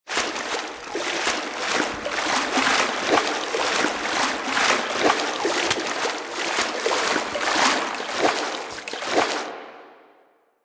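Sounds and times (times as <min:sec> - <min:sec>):
horse galloping through water: 0:00.0 - 0:09.7.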